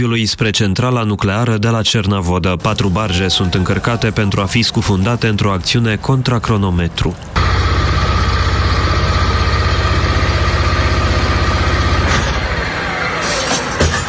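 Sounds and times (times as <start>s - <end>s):
speech: 0.0s - 7.5s
excavator and heavy machinery diesel engines rumbling: 2.3s - 14.0s
sharp clanks: 12.1s - 14.0s.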